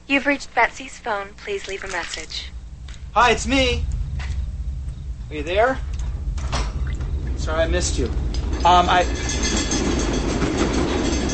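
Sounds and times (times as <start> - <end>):
speech: 0.1 - 4.0, 5.3 - 6.0, 7.4 - 9.6
train rumbling through: 2.4 - 11.3.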